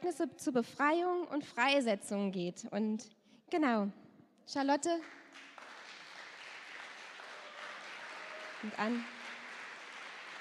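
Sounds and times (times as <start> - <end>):
speech: 0.0 - 5.5, 8.6 - 9.2
audience applause: 5.3 - 10.4.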